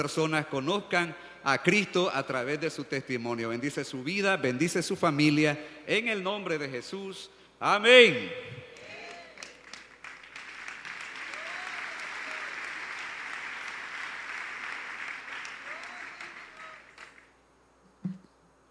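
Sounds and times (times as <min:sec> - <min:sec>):
speech: 0:00.0 - 0:08.6
large crowd applauding: 0:08.8 - 0:17.3.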